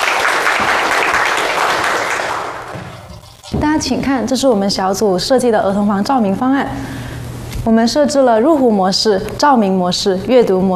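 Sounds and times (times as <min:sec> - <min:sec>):
classroom applause: 0:00.0 - 0:03.1
speech: 0:03.8 - 0:10.7.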